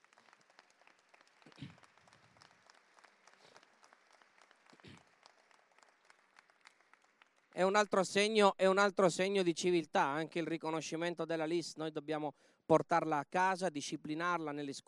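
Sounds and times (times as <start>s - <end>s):
audience applause: 0.0s - 7.9s
speech: 7.6s - 14.8s.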